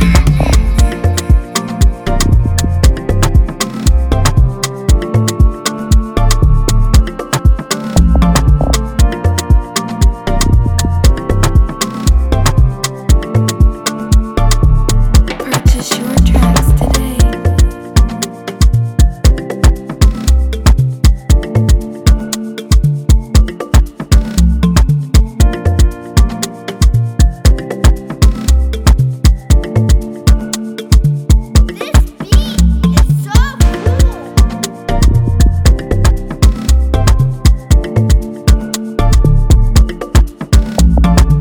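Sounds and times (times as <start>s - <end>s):
music beat in F major: 0.0s - 41.3s.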